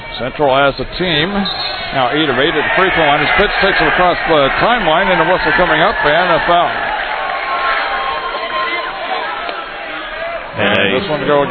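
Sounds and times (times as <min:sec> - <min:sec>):
speech: 0:00.2 - 0:06.9, 0:10.6 - 0:11.4
sarcastic standing ovation from basketball fans: 0:01.7 - 0:11.0.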